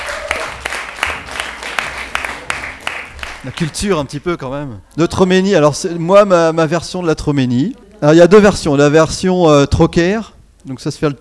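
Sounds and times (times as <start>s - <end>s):
audience applause: 0.0s - 4.1s
speech: 3.4s - 11.1s.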